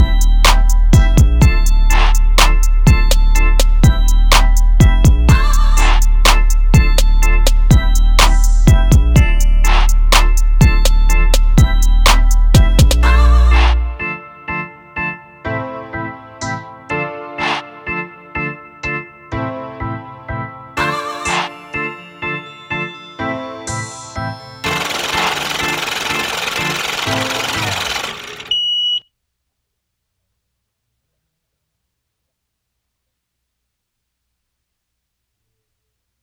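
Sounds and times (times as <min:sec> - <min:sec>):
instrumental music: 0:00.0 - 0:28.4.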